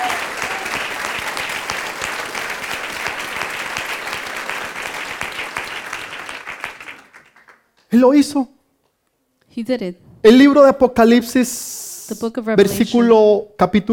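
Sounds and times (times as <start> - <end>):
audience applause: 0.0 - 7.7
speech: 7.9 - 8.6, 9.6 - 13.9.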